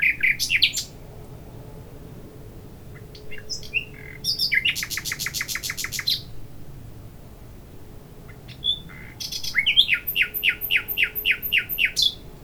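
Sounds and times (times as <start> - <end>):
common nightingale Luscinia megarhynchos singing: 0.0 - 1.0, 3.0 - 6.3, 8.3 - 12.2.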